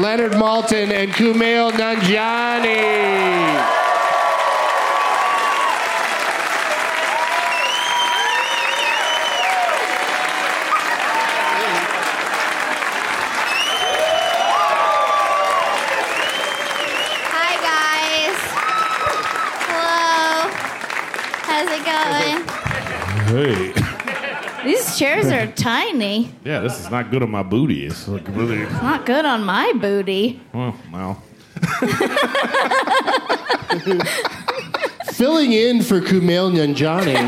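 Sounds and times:
speech: 0.0s - 3.8s, 23.3s - 23.8s, 24.9s - 34.4s, 35.2s - 37.2s
audience applause: 0.0s - 25.5s
crowd whooping and cheering: 0.0s - 25.5s
whistles and shouts: 7.4s - 9.8s, 13.4s - 14.8s, 16.0s - 17.3s
laughter: 21.8s - 25.5s, 31.6s - 35.7s, 36.5s - 37.2s.

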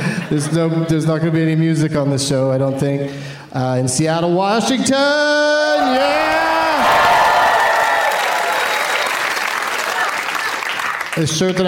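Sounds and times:
speech: 0.3s - 6.9s, 11.2s - 11.6s
audience clapping: 6.2s - 11.6s.

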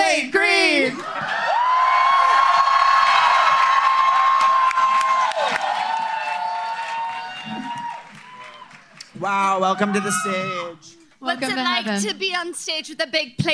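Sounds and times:
crowd at a live comedy show cheering and applauding: 1.0s - 10.7s
speech: 9.6s - 13.5s.

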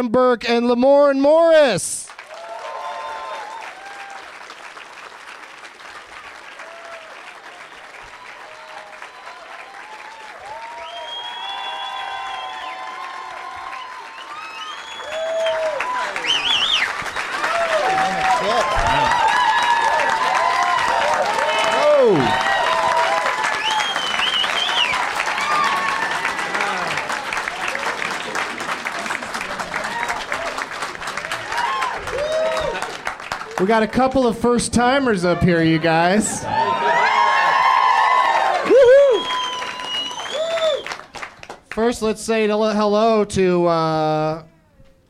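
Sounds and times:
speech: 0.0s - 2.2s, 33.7s - 36.6s, 41.8s - 44.5s
audience applause: 2.1s - 34.1s, 35.6s - 41.9s
cheering whoops, shouts and whistles: 2.3s - 4.4s, 6.6s - 27.9s, 31.2s - 32.9s, 36.4s - 41.1s.

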